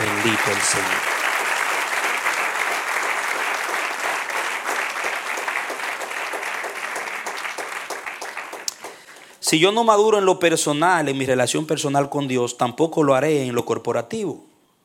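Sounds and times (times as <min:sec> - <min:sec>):
audience applause: 0:00.0 - 0:09.4
speech: 0:00.2 - 0:01.2, 0:09.5 - 0:14.5.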